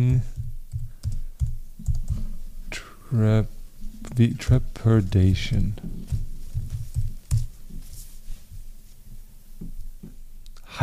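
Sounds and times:
keyboard typing a word into search: 0.0 - 2.3, 6.5 - 7.5
speech: 3.1 - 3.6, 4.2 - 6.0.

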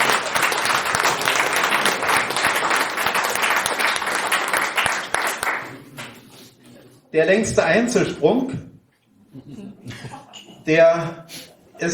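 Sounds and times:
audience applause: 0.0 - 6.2
speech: 7.1 - 8.7, 9.4 - 11.9.

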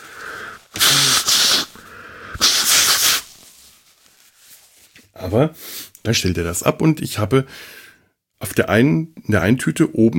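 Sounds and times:
person blowing nose: 0.0 - 3.4
speech: 5.2 - 7.8, 8.4 - 10.1.

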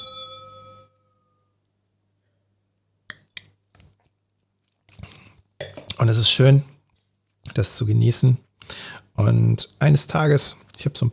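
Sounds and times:
wine glasses clinking in a toast: 0.0 - 1.0
speech: 6.0 - 6.8, 7.6 - 11.1.

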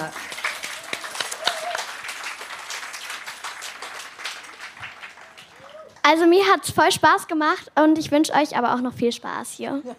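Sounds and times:
audience applause: 0.0 - 6.0
speech: 6.1 - 9.9.

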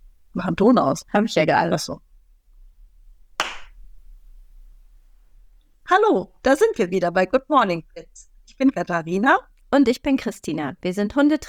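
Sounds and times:
speech: 0.4 - 2.1, 5.9 - 11.4
single sharp hand clap: 3.4 - 3.7.

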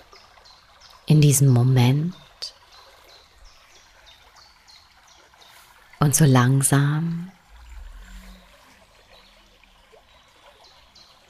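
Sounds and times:
stream flowing: 0.0 - 11.2
speech: 1.1 - 2.2, 6.1 - 7.4
low rumble: 7.0 - 10.0.

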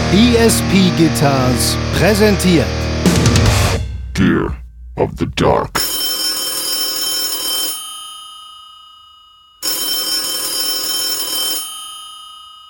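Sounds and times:
speech: 0.1 - 3.3, 4.2 - 5.9
1970s telephone bell ringing: 5.8 - 12.6.

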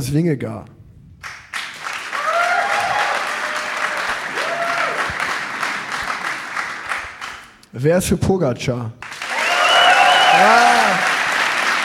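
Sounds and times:
speech: 0.0 - 0.8, 7.7 - 9.0, 10.4 - 11.0
audience cheering and applauding: 1.5 - 7.6, 9.0 - 11.8.

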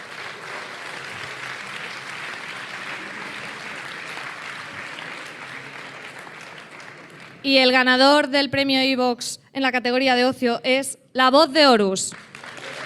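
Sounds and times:
audience applause: 0.0 - 7.5, 12.1 - 12.8
speech: 7.4 - 12.3.

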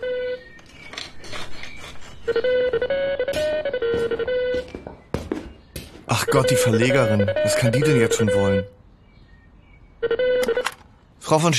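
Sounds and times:
phone ringing with electronic ringtone melody: 0.0 - 0.6, 2.3 - 4.8, 6.1 - 8.7, 10.0 - 10.7
speech: 2.3 - 4.3, 6.2 - 8.8, 11.3 - 11.5.

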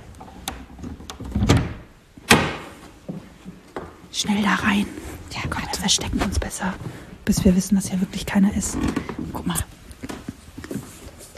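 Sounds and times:
door being opened: 0.2 - 2.8
speech: 4.2 - 9.8.

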